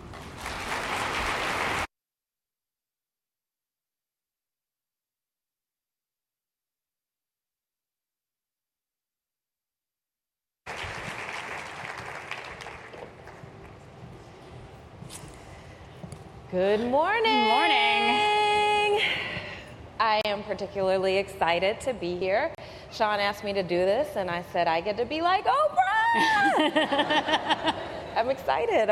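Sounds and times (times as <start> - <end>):
audience clapping to welcome two speakers: 0.0 - 1.9, 10.7 - 13.8
speech: 16.5 - 18.3, 20.0 - 28.9
laughter: 26.2 - 28.3.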